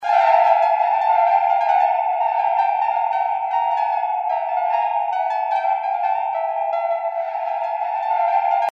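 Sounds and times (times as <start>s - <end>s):
animated string music: 0.0s - 8.7s.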